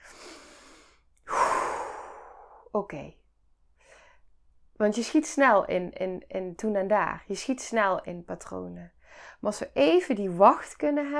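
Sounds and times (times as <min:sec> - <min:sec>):
person breathing during a pause in speech: 0:00.0 - 0:02.7, 0:03.8 - 0:04.4, 0:09.0 - 0:09.4
sigh-like breath: 0:00.0 - 0:02.7
speech: 0:02.8 - 0:03.2, 0:04.8 - 0:11.1.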